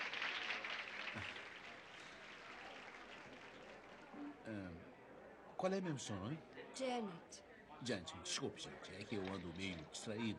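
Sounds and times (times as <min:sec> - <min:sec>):
audience applause: 0:00.0 - 0:04.1
speech: 0:01.2 - 0:01.4, 0:04.4 - 0:04.9, 0:05.6 - 0:10.3.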